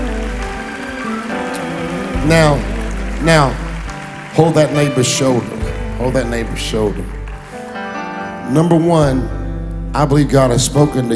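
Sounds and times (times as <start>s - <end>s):
audience applauding: 0.0s - 7.9s
sustained low musical tones: 0.0s - 11.1s
speech: 2.2s - 3.6s, 4.4s - 7.2s, 8.5s - 9.4s, 10.0s - 11.1s.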